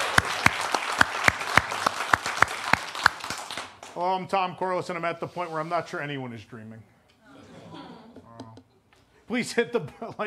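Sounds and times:
applause: 0.0 - 4.0
speech: 4.0 - 6.9, 9.3 - 10.2.

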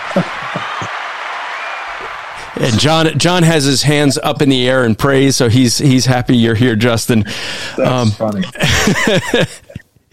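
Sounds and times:
laughter: 0.0 - 1.0, 7.8 - 9.9
canned applause sound effect: 0.0 - 4.1
speech: 0.2 - 0.6, 2.6 - 9.6.

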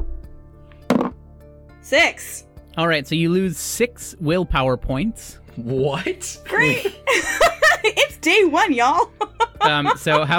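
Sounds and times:
knocking on plywood: 0.9 - 1.2
speech: 1.8 - 10.3
laughter: 6.6 - 8.2, 9.2 - 10.3.

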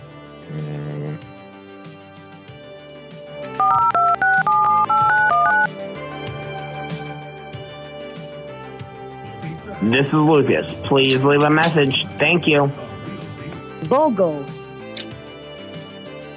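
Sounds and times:
speech: 0.5 - 0.9, 9.8 - 12.9, 13.9 - 14.6
phone number dialed on a keypad: 3.6 - 5.7.

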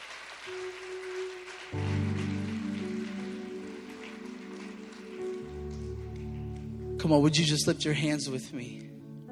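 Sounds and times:
audience clapping hands: 0.0 - 7.9
speech: 7.1 - 9.0.

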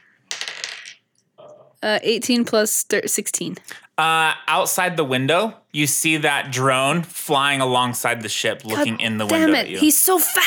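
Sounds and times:
dice rattling on a hard surface: 0.2 - 1.0
speech: 1.8 - 10.4.

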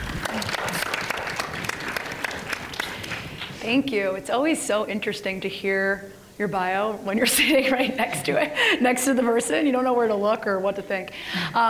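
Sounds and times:
audience applauding a speaker onto an event stage: 0.0 - 3.6
speech: 3.6 - 11.6.

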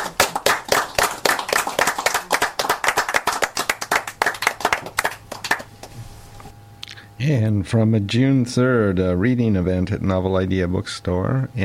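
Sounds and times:
audience applause: 0.0 - 5.9
speech: 7.2 - 11.6.

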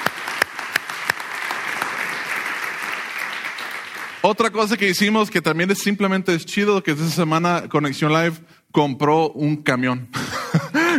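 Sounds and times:
audience applause: 0.0 - 4.4
speech: 4.2 - 10.4.

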